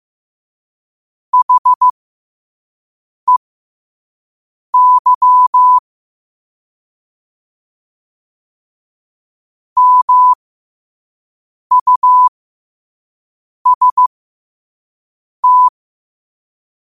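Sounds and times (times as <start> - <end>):
morse code at 5 wpm: 1.4 - 1.9, 4.8 - 5.8, 9.8 - 10.4, 11.7 - 12.3, 13.7 - 14.1, 15.4 - 15.7.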